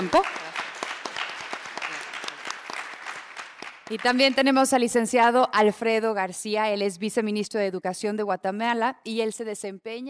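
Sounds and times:
audience applause: 0:00.0 - 0:04.5
speech: 0:00.1 - 0:00.4, 0:03.9 - 0:10.0.

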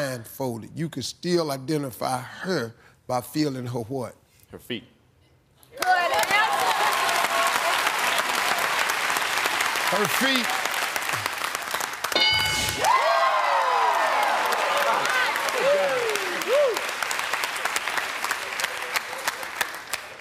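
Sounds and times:
speech: 0:00.2 - 0:04.9, 0:09.9 - 0:10.6
audience clapping: 0:05.8 - 0:20.1.

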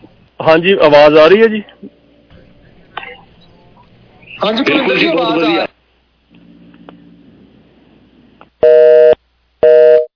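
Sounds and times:
faint low telephone line hiss: 0:00.0 - 0:08.6
speech: 0:00.4 - 0:02.0, 0:04.4 - 0:05.7
telephone busy tone after a dropped call: 0:08.6 - 0:10.1.

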